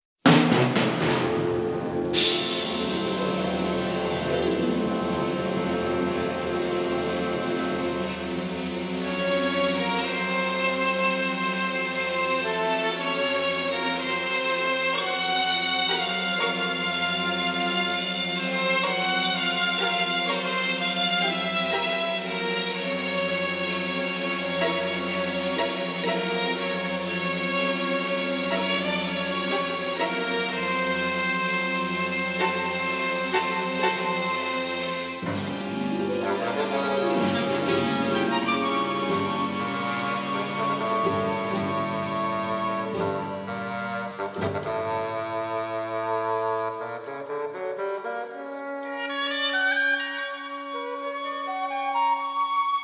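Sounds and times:
old horror orchestral music: 0.3 - 52.7.

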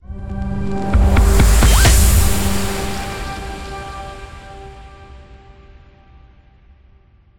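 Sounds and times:
transition sound: 0.1 - 5.4.

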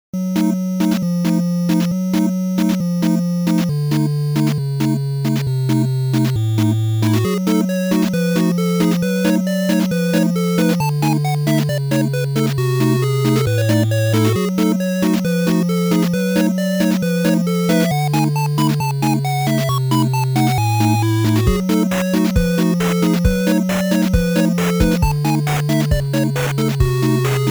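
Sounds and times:
8-bit chiptune: 0.2 - 27.4.

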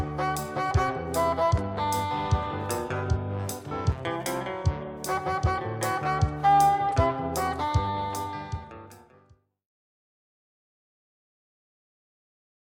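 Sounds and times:
lo-fi instrumental music: 0.0 - 9.4.

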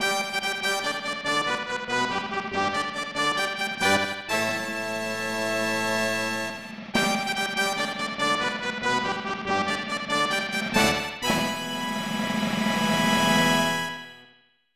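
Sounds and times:
fanfare: 0.0 - 14.2.

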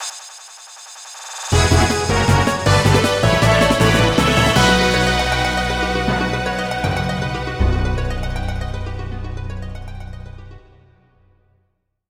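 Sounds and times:
boss victory music: 1.5 - 10.6.

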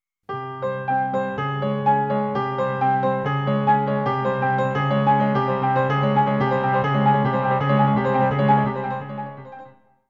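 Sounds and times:
background music: 0.4 - 9.9.

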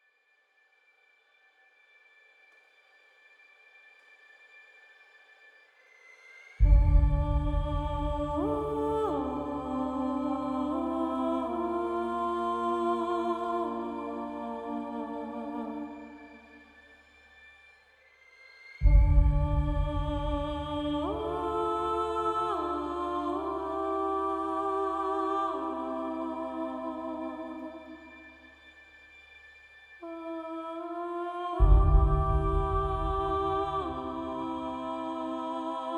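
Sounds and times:
ambience: 6.6 - 16.9, 18.8 - 29.4, 30.0 - 35.9.

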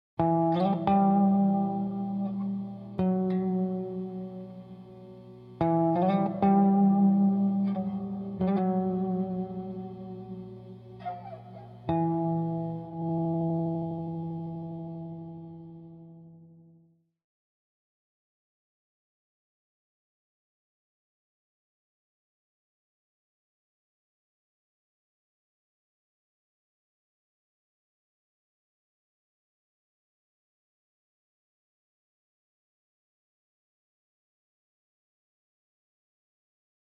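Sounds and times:
dark guitar: 0.2 - 16.9.

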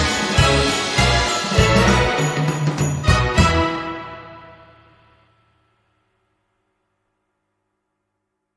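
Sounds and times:
jazz Christmas carol: 0.0 - 5.3.

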